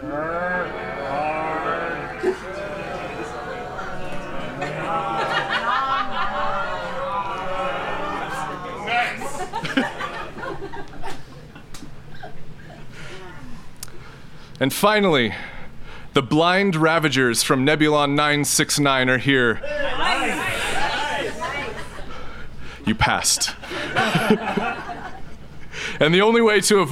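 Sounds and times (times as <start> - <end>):
audience groaning in imitation of zombies: 0.0 - 10.4, 19.6 - 22.0
laughter: 0.0 - 13.4, 19.6 - 22.4, 23.0 - 25.7
speech: 14.6 - 15.5, 16.2 - 19.7, 23.1 - 24.8, 26.0 - 26.9.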